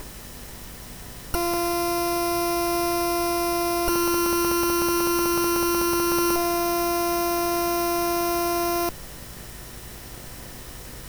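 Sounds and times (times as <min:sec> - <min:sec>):
buzzing sound: 0:01.4 - 0:08.9.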